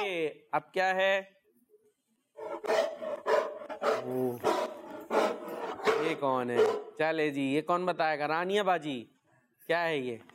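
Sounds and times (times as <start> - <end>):
speech: 0.3 - 1.4, 3.8 - 4.7, 6.0 - 10.3
dog barking loudly: 2.4 - 7.0.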